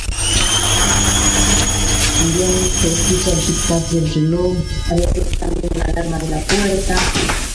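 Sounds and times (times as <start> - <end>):
washing machine running: 0.1 - 4.1
speech: 3.4 - 7.4.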